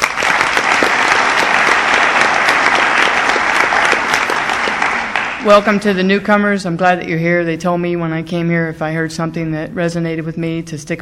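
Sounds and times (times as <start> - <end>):
audience applause at an Al-Anon gathering: 0.0 - 5.5
speech: 5.4 - 10.9.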